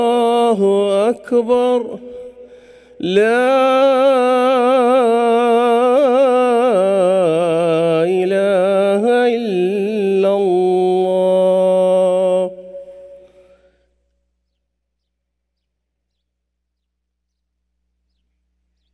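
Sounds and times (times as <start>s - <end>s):
second Friday call to prayer: 0.0s - 14.0s.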